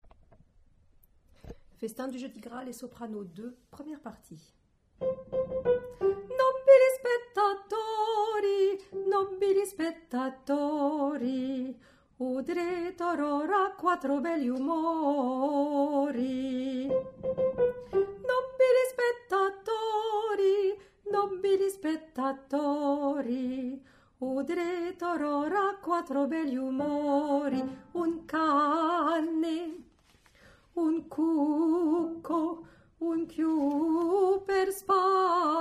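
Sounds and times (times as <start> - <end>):
soprano singing: 5.0 - 29.9, 30.8 - 35.5.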